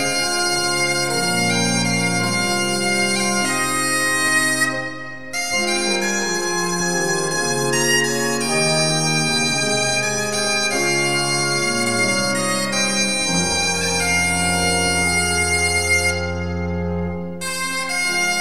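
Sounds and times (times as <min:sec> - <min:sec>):
organs playing: 0:00.0 - 0:18.3.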